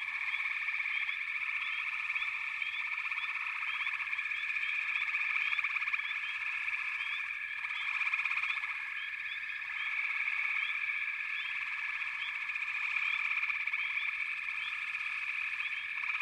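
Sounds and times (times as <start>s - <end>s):
frogs trilling in chorus: 0.0s - 16.1s.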